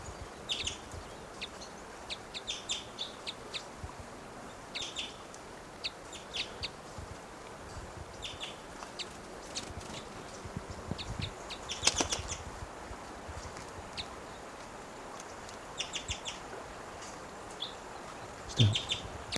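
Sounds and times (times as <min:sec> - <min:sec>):
hiss: 0:00.0 - 0:19.3
wild male bird giving cuckoo-like calls: 0:18.5 - 0:19.1.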